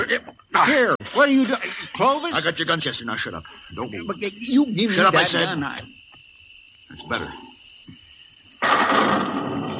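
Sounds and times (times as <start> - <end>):
speech: 0.1 - 6.0, 6.9 - 7.5
thunder: 8.7 - 9.7.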